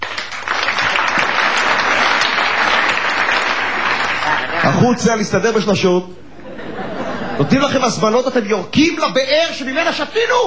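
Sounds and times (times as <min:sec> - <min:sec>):
group clapping hands in unison: 0:00.0 - 0:04.6
laughter: 0:03.8 - 0:05.0, 0:06.2 - 0:08.1
speech: 0:04.8 - 0:06.3, 0:07.4 - 0:10.4.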